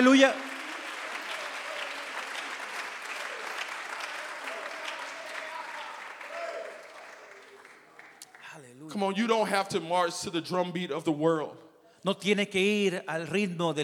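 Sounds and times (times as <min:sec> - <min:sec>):
speech: 0:00.0 - 0:00.5, 0:08.9 - 0:13.8
large crowd clapping in praise: 0:00.0 - 0:09.0.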